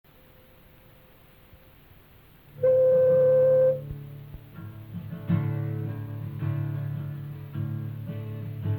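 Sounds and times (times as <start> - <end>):
guitar instrumental: 2.5 - 8.7.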